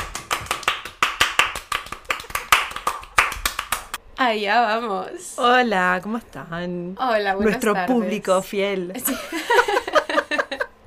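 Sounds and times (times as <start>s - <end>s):
several hands clapping: 0.0s - 4.0s
speech: 4.2s - 9.8s
laughter: 9.1s - 10.7s.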